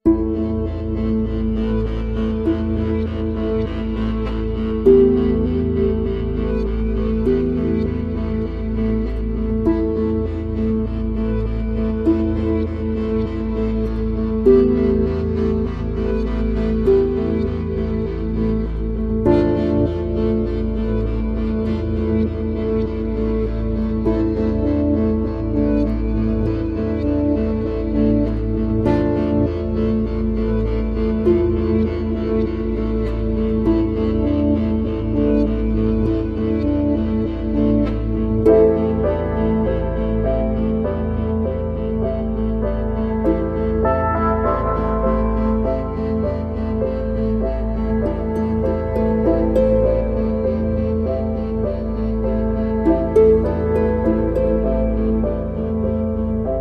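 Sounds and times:
guitar without EBow: 0:00.0 - 0:56.5.

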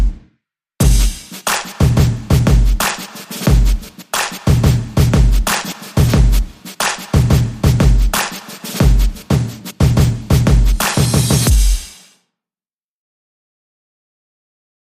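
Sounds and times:
clap beat: 0:00.8 - 0:12.1.

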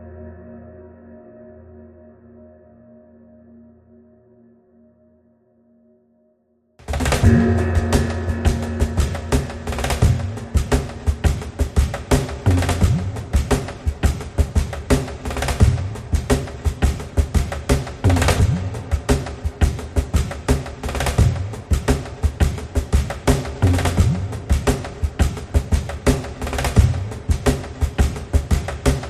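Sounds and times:
drums: 0:06.8 - 0:29.0.

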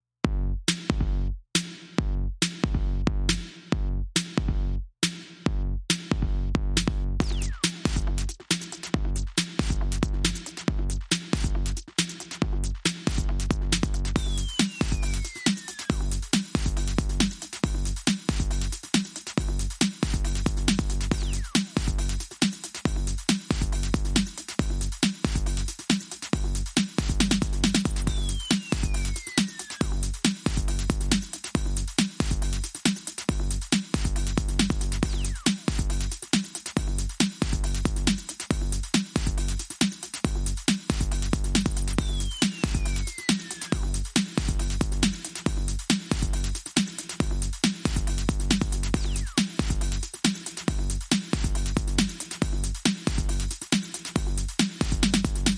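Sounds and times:
bonus beats: 0:00.3 - 0:55.5.

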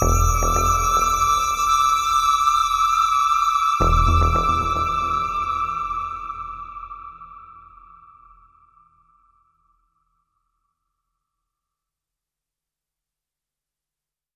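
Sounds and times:
immense space drone: 0:00.0 - 0:02.5, 0:03.8 - 0:08.0.

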